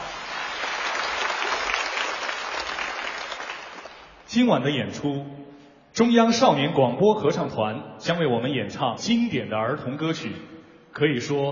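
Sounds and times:
audience applause: 0:00.0 - 0:04.2
speech: 0:04.4 - 0:05.4, 0:06.0 - 0:11.5.

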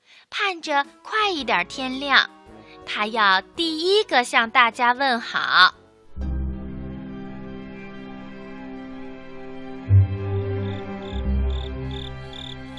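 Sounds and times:
speech: 0:00.4 - 0:05.8
crickets chirping in the grass: 0:10.5 - 0:12.7.

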